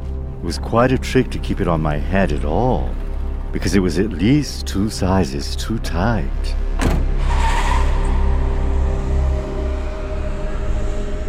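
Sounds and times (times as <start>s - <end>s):
taxi engine roar: 0.0s - 11.2s
speech: 0.4s - 7.1s
taxi tire squeal: 7.0s - 11.2s.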